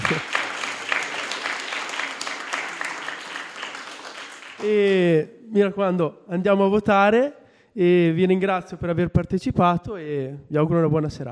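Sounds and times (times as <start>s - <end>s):
audience applause: 0.0s - 5.0s
speech: 4.6s - 11.2s.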